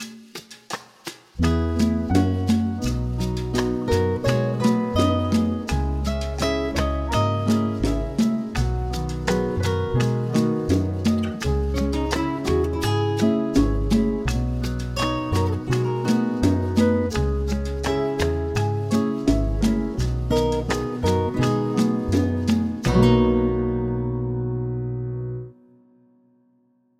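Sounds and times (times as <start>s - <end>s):
single major key chords: 1.4s - 25.8s.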